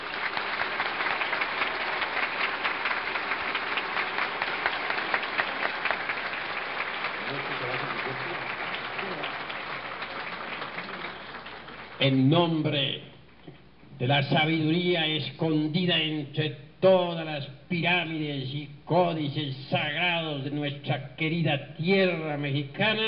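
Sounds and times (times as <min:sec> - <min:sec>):
audience applause: 0:00.0 - 0:12.2
speech: 0:12.0 - 0:13.1, 0:14.0 - 0:23.0.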